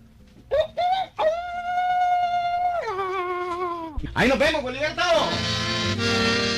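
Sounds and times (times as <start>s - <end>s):
rooster crowing: 0.5s - 3.6s
speech: 4.0s - 6.4s.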